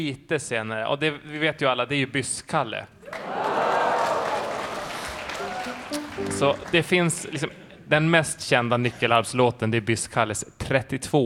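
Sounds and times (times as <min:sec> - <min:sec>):
speech: 0:00.0 - 0:03.5, 0:05.9 - 0:11.2
audience cheering and applauding at a nyckelharpa and flute concert: 0:03.1 - 0:07.4.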